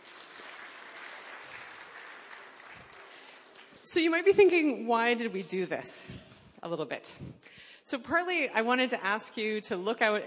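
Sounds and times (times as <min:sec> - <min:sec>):
round of applause: 0:00.0 - 0:03.9
speech: 0:03.9 - 0:10.2.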